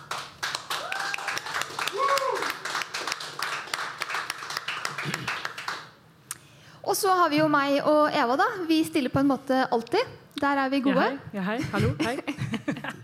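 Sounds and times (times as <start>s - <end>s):
applause: 0.0s - 6.0s
speech: 7.0s - 12.3s.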